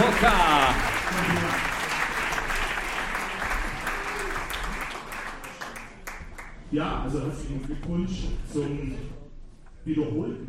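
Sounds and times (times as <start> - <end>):
audience applause: 0.0 - 6.6
speech: 6.7 - 9.2, 9.8 - 10.4.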